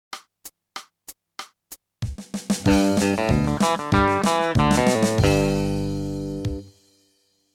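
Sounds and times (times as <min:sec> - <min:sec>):
country music: 0:02.6 - 0:06.7.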